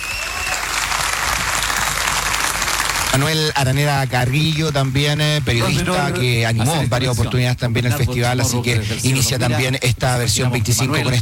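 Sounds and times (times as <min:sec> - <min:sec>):
large audience applause: 0:00.0 - 0:06.0
speech: 0:03.1 - 0:11.2.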